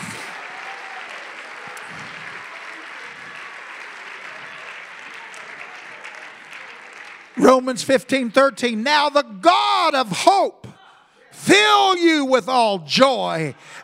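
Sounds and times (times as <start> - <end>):
audience clapping: 0.0 - 8.8
speech: 7.4 - 10.6, 11.5 - 13.8.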